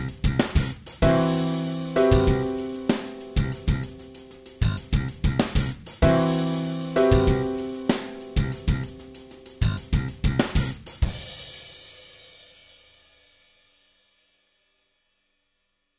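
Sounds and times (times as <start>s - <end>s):
guitar jam track: 0.0s - 10.8s.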